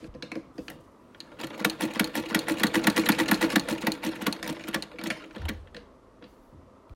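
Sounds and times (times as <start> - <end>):
sewing machine: 1.2 - 5.8.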